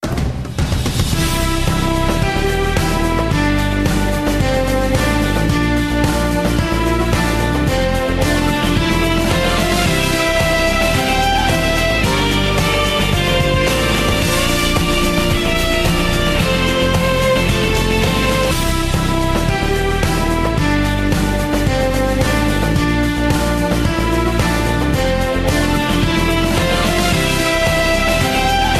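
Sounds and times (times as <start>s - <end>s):
backing track: 0.0s - 28.7s.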